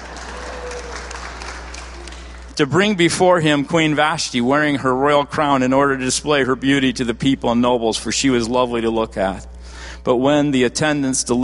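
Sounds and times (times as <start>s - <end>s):
applause: 0.0s - 2.6s
speech: 2.6s - 11.4s.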